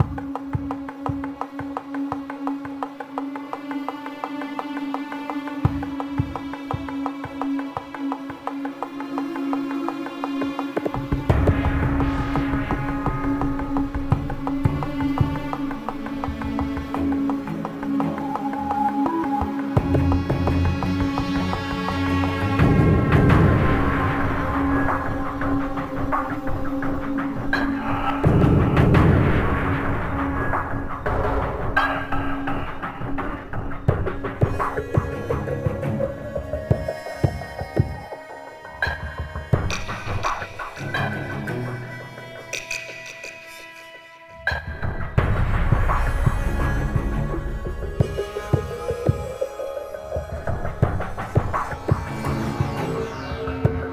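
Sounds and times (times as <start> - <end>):
ambient music: 0.0 - 53.9.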